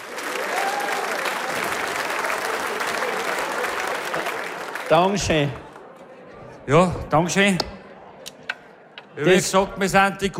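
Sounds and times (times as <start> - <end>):
audience applause: 0.0 - 6.2
speech: 4.9 - 5.6, 6.7 - 7.8, 9.2 - 10.3.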